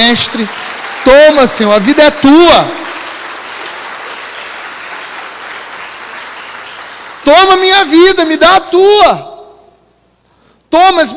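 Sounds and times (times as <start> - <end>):
audience applause: 0.0 - 7.6
speech: 0.1 - 2.8, 7.2 - 9.3, 10.7 - 11.1.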